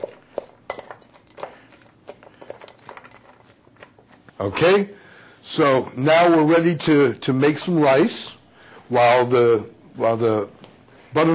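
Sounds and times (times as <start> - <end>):
utensil clinking against a bowl while mixing stuffing: 0.0 - 3.9
speech: 4.4 - 11.3.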